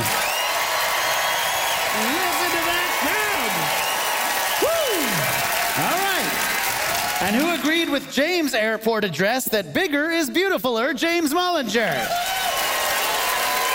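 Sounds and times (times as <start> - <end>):
audience applause: 0.0 - 8.1, 11.9 - 13.7
speech: 7.3 - 12.3.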